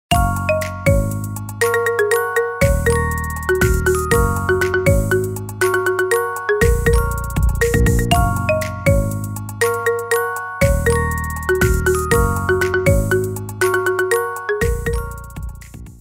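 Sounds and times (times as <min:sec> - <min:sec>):
marimba cover: 0:00.1 - 0:15.8.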